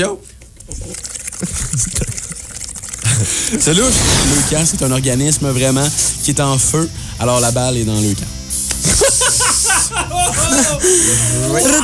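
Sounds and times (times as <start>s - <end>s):
speech: 0.0s - 2.4s, 3.2s - 9.0s, 9.9s - 11.8s
blowing bubbles through a straw into a glass of liqueur: 0.6s - 3.6s
laughter: 1.4s - 5.0s, 8.8s - 11.8s.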